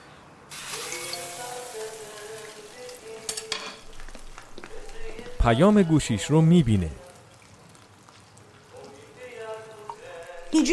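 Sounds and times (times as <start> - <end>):
food sizzling and crackling in a hot pan: 0.5 - 5.3, 7.0 - 10.7
speech: 5.4 - 7.0.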